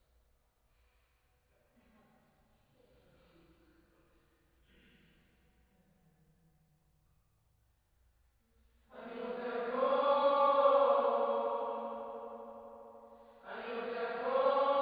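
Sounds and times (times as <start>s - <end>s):
choir singing: 8.9s - 14.8s.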